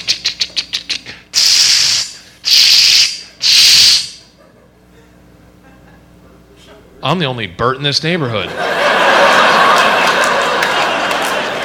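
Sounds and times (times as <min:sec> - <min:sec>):
voice imitating spray paint can rattling: 0:00.0 - 0:04.0
laughter: 0:04.3 - 0:06.9, 0:08.4 - 0:11.6
speech: 0:07.0 - 0:09.2.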